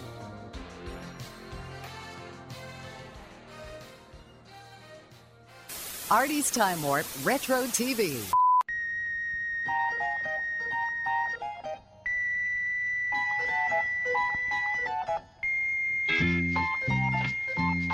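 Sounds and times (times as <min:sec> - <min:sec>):
speech: 0:06.1 - 0:08.4
whistle blowing in Lipton tea advertisement: 0:08.4 - 0:11.4, 0:12.1 - 0:14.8, 0:15.4 - 0:17.9.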